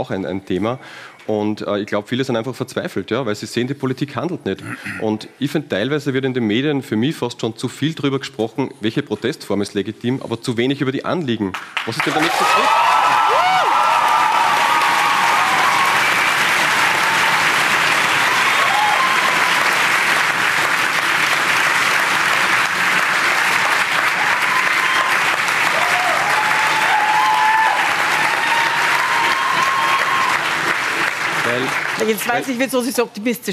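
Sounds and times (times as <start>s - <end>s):
speech: 0.0s - 12.9s, 32.1s - 33.5s
large crowd applauding in a full lecture hall: 11.5s - 32.7s
scattered whoops: 12.2s - 16.1s, 18.3s - 19.6s, 24.3s - 30.5s.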